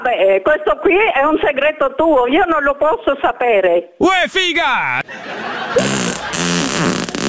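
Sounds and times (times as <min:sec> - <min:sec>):
speech: 0:00.1 - 0:07.1
laughter: 0:04.8 - 0:06.4
fart produced on demand: 0:05.8 - 0:07.2.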